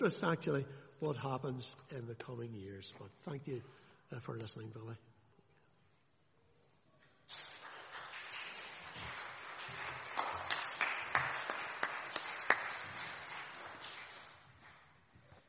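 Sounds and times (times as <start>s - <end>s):
speech: 0.0s - 5.1s
audience applause after sermon: 7.3s - 14.9s.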